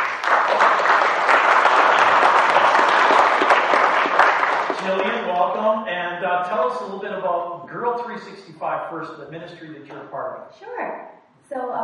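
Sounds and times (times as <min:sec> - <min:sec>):
crowd at a ministry event applauding to welcome a guest speaker: 0:00.0 - 0:05.8
speech: 0:06.7 - 0:11.8.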